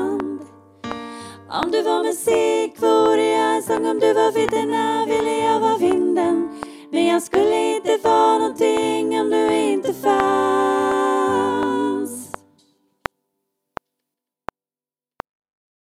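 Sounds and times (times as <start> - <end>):
senior choir sopranos singing a refrain: 0.0 - 12.6.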